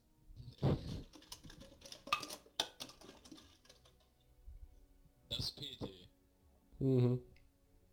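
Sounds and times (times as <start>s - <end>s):
bottles clinking and knocking together: 0.8s - 4.0s
speech: 5.4s - 5.9s, 6.8s - 7.3s.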